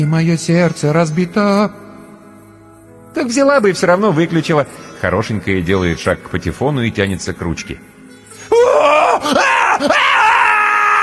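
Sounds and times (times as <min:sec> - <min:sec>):
speech: 0:00.0 - 0:01.8, 0:03.1 - 0:07.9, 0:08.7 - 0:10.2
terrible human scream: 0:08.5 - 0:11.0.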